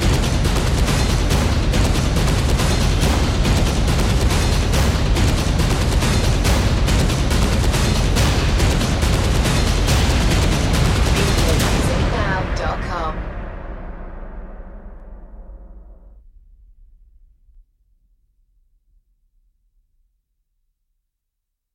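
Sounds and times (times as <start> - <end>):
fire drums: 0.0 - 13.2.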